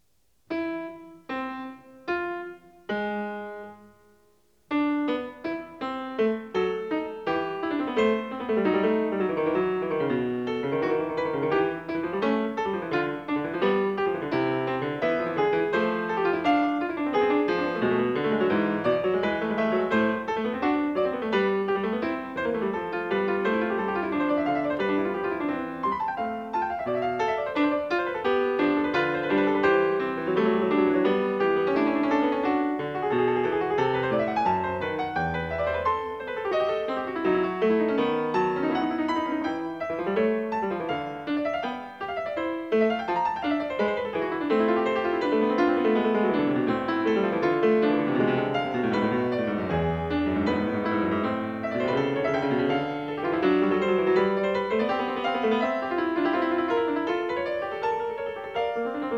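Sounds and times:
keyboard fugue in A minor: 0.0s - 59.1s.

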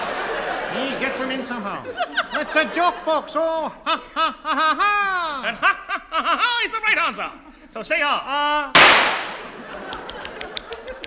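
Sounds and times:
laughter: 0.0s - 7.6s, 9.2s - 11.0s
speech: 0.7s - 9.3s
.303 rifle shot sound effect: 8.8s - 9.6s.

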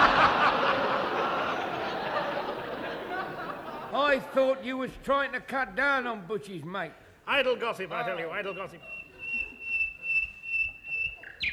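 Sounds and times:
laughter: 0.0s - 5.0s, 7.6s - 11.3s
speech: 4.2s - 9.0s
whistled bird call: 8.4s - 11.5s.

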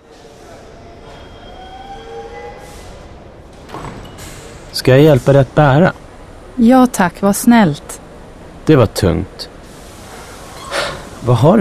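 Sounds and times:
train doors opening: 0.0s - 6.6s, 9.6s - 11.5s
train pulling into a station and stopping: 0.0s - 11.5s
speech: 4.8s - 6.0s, 6.6s - 7.8s, 8.7s - 9.5s, 11.2s - 11.5s.

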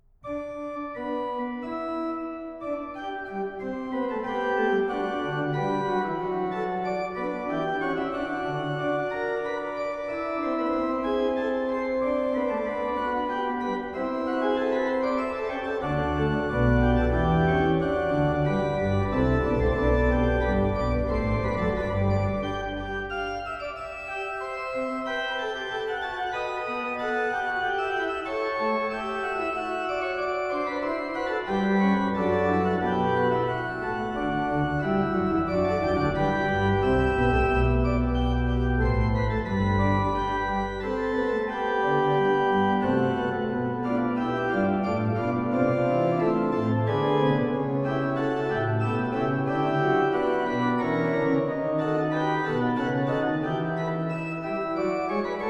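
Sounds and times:
organ fugue in G major: 0.2s - 55.4s.

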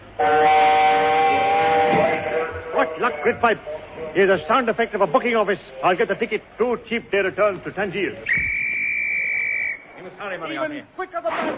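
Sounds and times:
speech: 0.2s - 0.4s, 3.2s - 8.6s, 10.0s - 11.5s
train horn blast: 0.2s - 3.3s.

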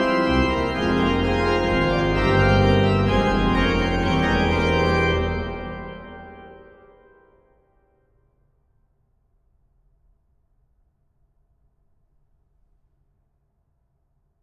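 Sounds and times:
unfinished organ fugue in C minor: 0.0s - 7.2s.

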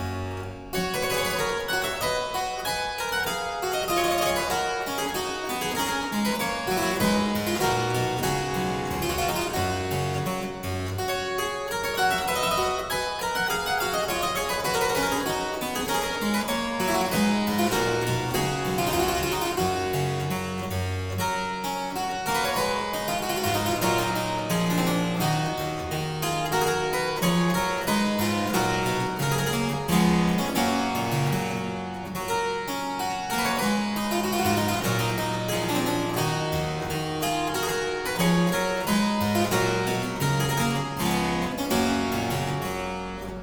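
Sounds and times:
harpsichord piece in G major: 0.0s - 43.4s.

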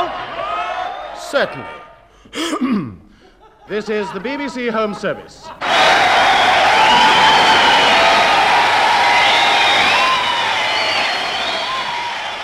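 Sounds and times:
speech: 1.3s - 3.0s, 3.7s - 7.7s
audience applause: 5.6s - 12.4s.

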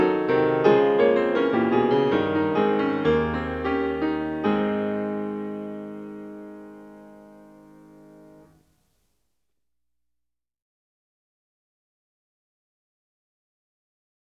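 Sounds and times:
keyboard fugue in A-flat major: 0.0s - 8.6s.

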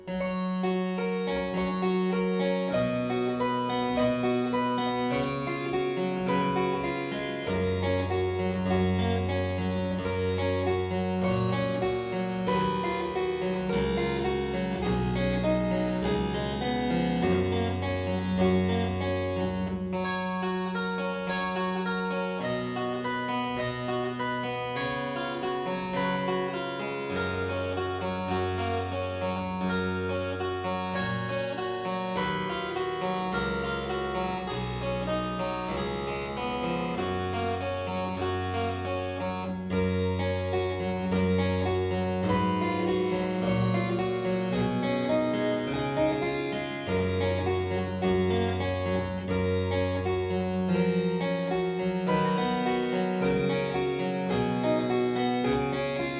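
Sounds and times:
harpsichord aria in G major: 0.0s - 56.1s.

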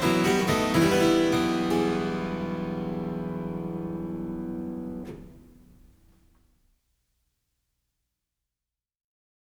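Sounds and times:
harpsichord gigue in E minor: 0.0s - 5.8s.

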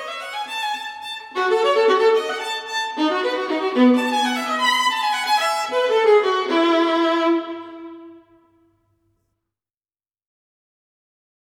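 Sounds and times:
solo violin gigue in E major: 0.0s - 8.7s.

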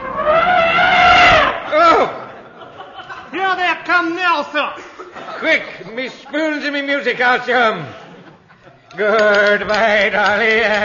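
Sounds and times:
elephant trumpeting sound effect: 0.0s - 1.7s
laughter: 1.6s - 10.0s
speech: 4.0s - 8.0s, 8.9s - 10.8s.

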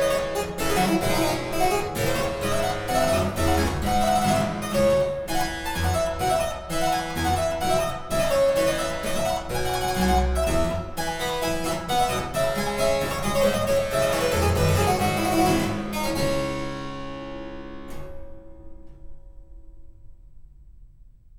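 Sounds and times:
harpsichord hornpipe in D minor: 0.0s - 16.3s.

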